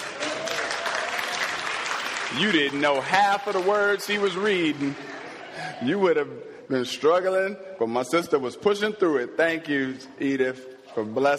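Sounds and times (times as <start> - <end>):
crowd clapping: 0.0 - 5.7
speech: 2.3 - 5.2, 5.8 - 11.3.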